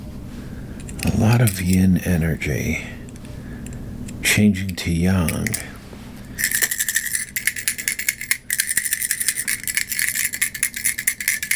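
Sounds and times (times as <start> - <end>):
speech: 1.1 - 3.0, 4.4 - 5.7
coins being dropped: 6.4 - 11.5.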